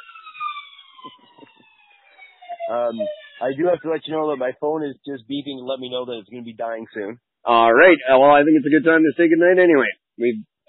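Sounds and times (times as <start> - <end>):
low rumbling bursts of traffic or engine noise: 0.0 - 1.8, 2.4 - 9.4
fire engine siren passing: 0.0 - 4.4
speech: 2.7 - 10.5.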